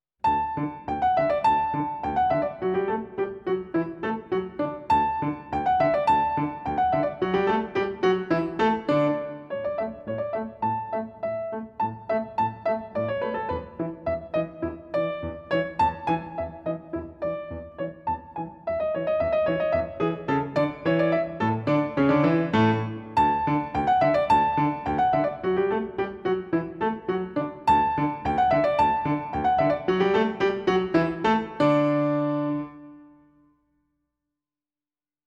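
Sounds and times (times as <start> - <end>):
musette piece in D major: 0.2 - 33.3.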